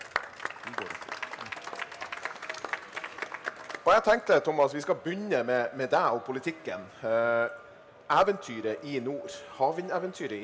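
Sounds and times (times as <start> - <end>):
audience applause: 0.0 - 4.0
speech: 0.7 - 1.1, 3.9 - 10.4.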